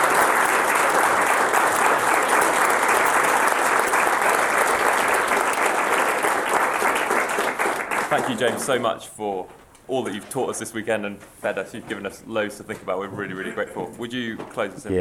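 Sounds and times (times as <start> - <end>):
audience applause: 0.0 - 9.0
speech: 8.2 - 15.0.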